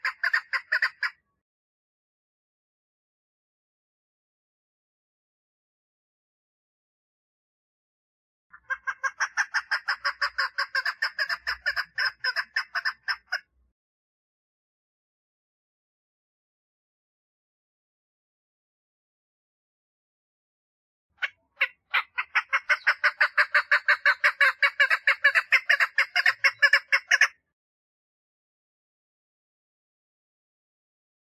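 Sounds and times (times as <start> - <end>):
partridge chuck calls: 0.0 - 1.2, 8.5 - 13.5, 21.2 - 27.4.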